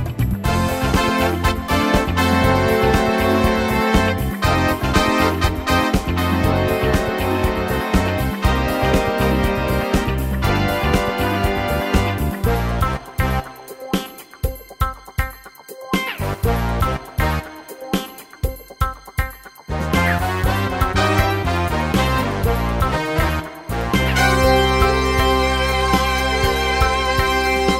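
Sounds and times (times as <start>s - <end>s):
seventies TV theme music on an arranger keyboard: 0.0s - 27.7s.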